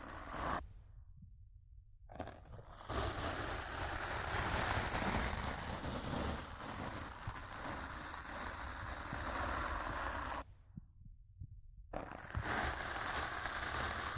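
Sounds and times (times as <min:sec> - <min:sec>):
rough scratching and brushing against a microphone: 0:00.0 - 0:00.6, 0:02.1 - 0:10.4, 0:11.9 - 0:14.1.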